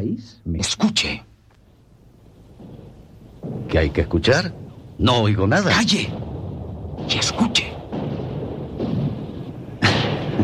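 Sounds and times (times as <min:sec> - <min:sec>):
speech: 0:00.0 - 0:01.3, 0:03.7 - 0:06.2
bomb, grenade and mortar explosions: 0:01.1 - 0:10.4.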